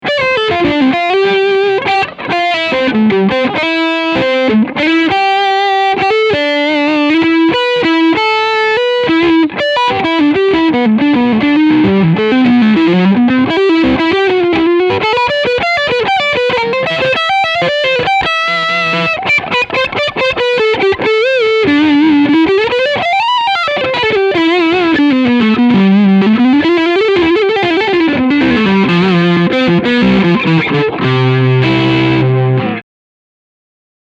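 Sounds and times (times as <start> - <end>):
crunch guitar tone with both pickups: 0.0 - 32.8.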